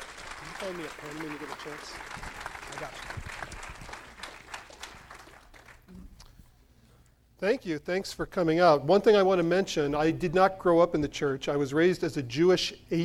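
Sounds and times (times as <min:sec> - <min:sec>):
audience applause: 0:00.0 - 0:05.9
speech: 0:00.6 - 0:03.3, 0:07.4 - 0:13.0.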